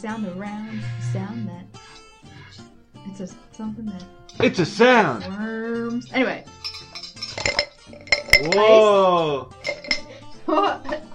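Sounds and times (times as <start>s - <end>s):
speech: 0.0s - 6.6s, 7.9s - 9.6s, 10.5s - 11.1s
ice clinking in a drink: 6.6s - 8.7s, 9.6s - 10.1s
long drawn-out vocal exclamation: 8.5s - 9.4s.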